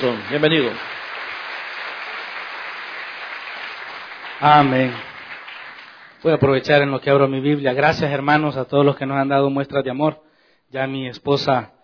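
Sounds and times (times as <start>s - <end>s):
speech: 0.0s - 1.0s, 4.4s - 5.1s, 6.2s - 11.8s
audience applause: 0.0s - 6.2s.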